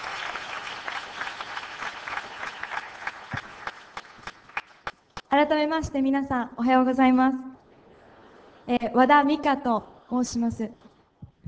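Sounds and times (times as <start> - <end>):
audience applause: 0.0 - 5.0
speech: 5.4 - 7.5, 8.7 - 10.8.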